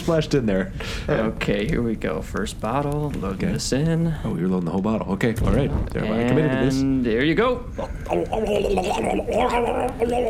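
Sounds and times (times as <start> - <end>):
speech: 0.0 - 10.2
person gargling liquid: 7.8 - 10.2.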